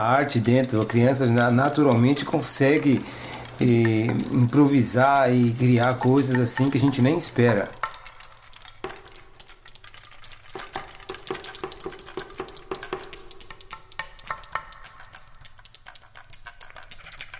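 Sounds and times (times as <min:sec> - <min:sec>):
speech: 0:00.0 - 0:07.8
music played on seashells and beach objects: 0:00.0 - 0:17.3.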